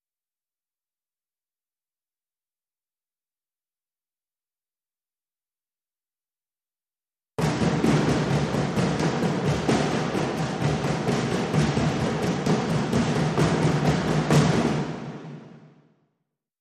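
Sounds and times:
dhol drum played with brush loop: 7.4s - 15.5s.

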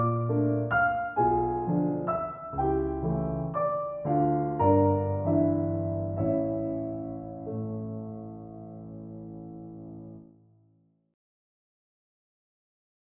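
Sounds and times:
waltz: 0.0s - 10.2s.

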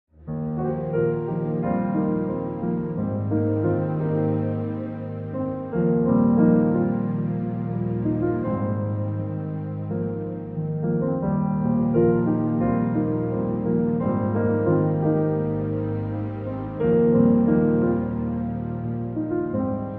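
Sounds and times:
strings: 0.2s - 19.9s.

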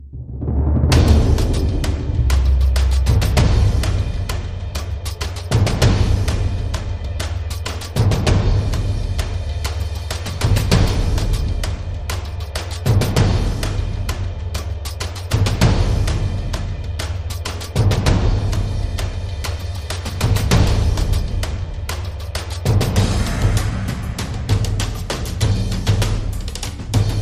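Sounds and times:
drums: 0.0s - 27.2s.

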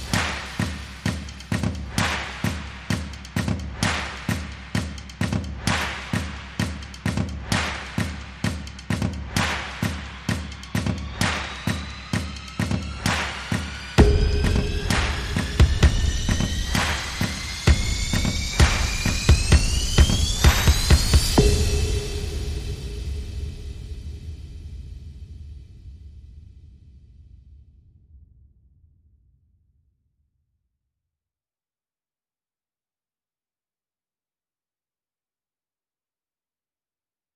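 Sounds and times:
drums: 0.0s - 27.4s.

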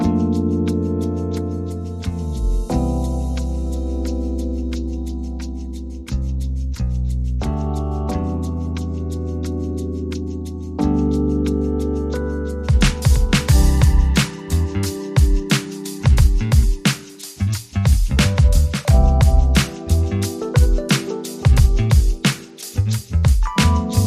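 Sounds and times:
bass: 0.0s - 15.2s, 16.1s - 20.8s, 21.5s - 24.0s
keyboard: 0.0s - 24.0s
drums: 12.6s - 24.0s.

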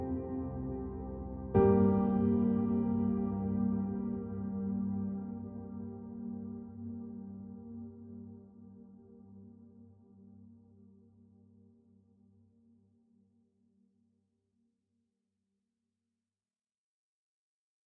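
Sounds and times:
piano music: 0.0s - 8.4s.

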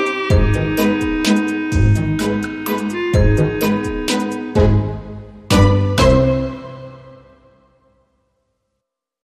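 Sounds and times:
modern percussion: 0.0s - 6.9s.

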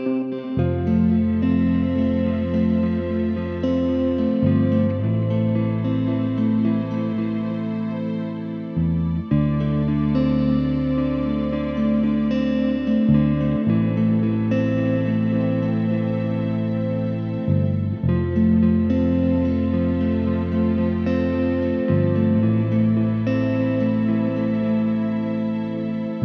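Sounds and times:
underscore music: 0.2s - 26.2s.

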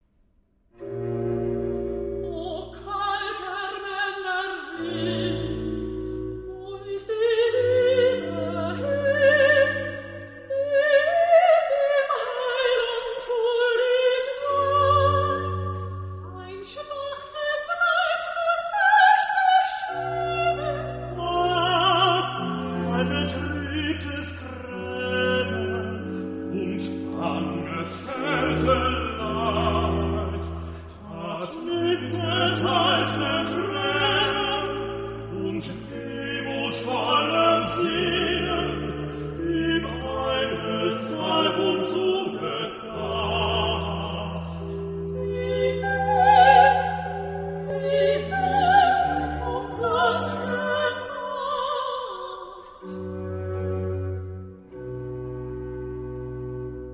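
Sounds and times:
oratorio recitative: 0.8s - 56.9s.

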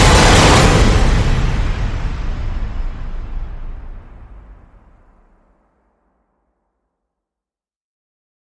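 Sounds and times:
drums: 0.0s - 5.1s.

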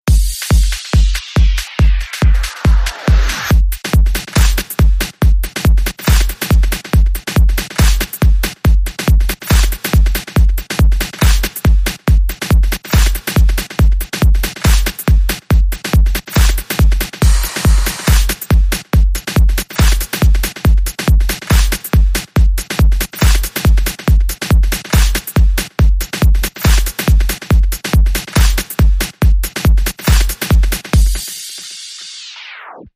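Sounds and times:
auxiliary beat: 0.0s - 32.8s.

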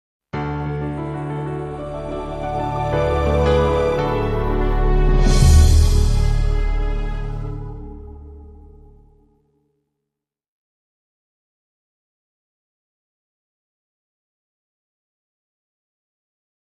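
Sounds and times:
soft movie logo sound: 0.5s - 9.2s.

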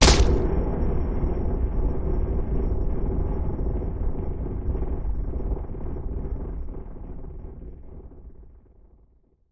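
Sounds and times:
crashing impact: 0.0s - 0.5s
rumble: 0.0s - 9.4s.

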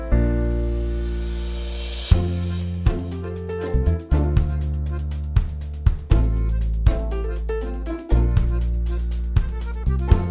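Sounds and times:
strings: 0.1s - 10.2s
accordion: 2.1s - 10.2s.

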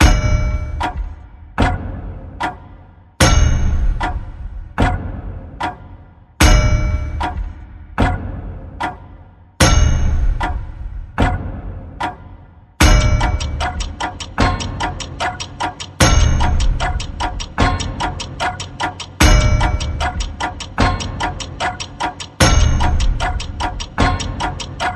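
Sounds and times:
suspense clocks: 0.0s - 24.9s.

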